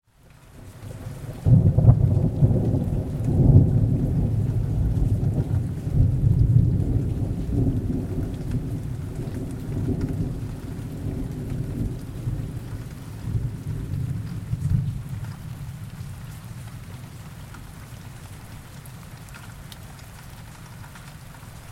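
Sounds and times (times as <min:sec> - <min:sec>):
thunder: 0:01.4 - 0:16.1.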